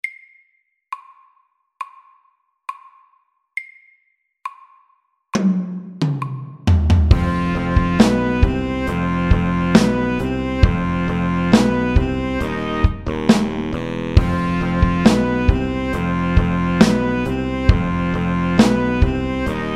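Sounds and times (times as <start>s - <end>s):
slow funk music at 68 BPM: 6.7s - 19.7s.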